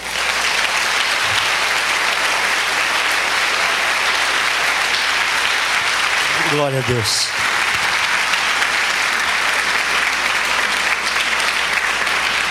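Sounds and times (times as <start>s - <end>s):
audience applause: 0.0s - 12.5s
speech: 6.6s - 7.4s.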